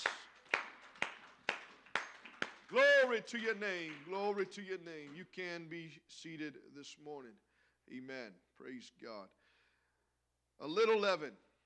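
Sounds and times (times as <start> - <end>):
group clapping hands in unison: 0.0 - 5.4
speech: 2.7 - 9.4, 10.6 - 11.5.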